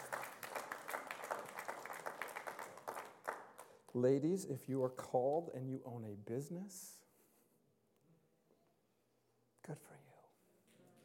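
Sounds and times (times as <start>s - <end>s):
audience applause: 0.0s - 3.8s
speech: 3.9s - 7.0s, 9.6s - 10.0s.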